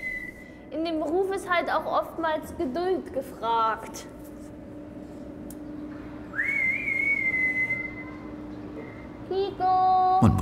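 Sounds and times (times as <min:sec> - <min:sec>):
keeper whistling to call an animal: 0:00.0 - 0:00.5, 0:06.3 - 0:08.1
low hum: 0:00.0 - 0:10.4
speech: 0:00.8 - 0:04.2, 0:09.6 - 0:10.4.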